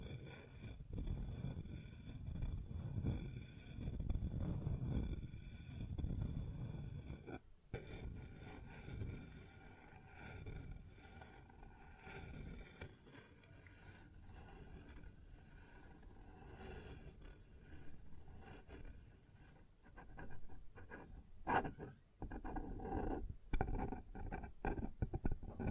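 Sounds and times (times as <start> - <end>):
sounds on wooden surface: 0.0 - 25.6.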